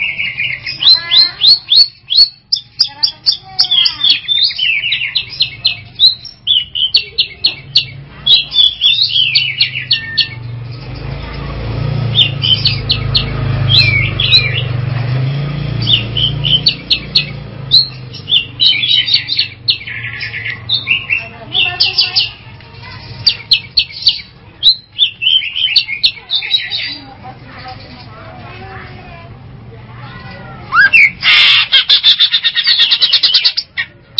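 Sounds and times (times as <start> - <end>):
long-tailed shrike song: 0.0 - 28.1, 30.6 - 34.1.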